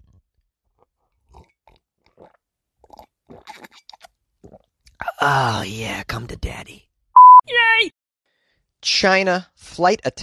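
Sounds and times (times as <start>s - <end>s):
person drinking coffee: 1.1s - 5.1s
speech: 5.2s - 8.0s, 8.8s - 10.2s.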